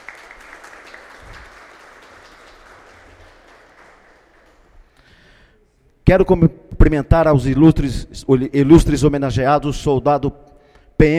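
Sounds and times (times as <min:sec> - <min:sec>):
audience applause: 0:00.0 - 0:05.0
speech: 0:06.1 - 0:10.4, 0:11.0 - 0:11.1.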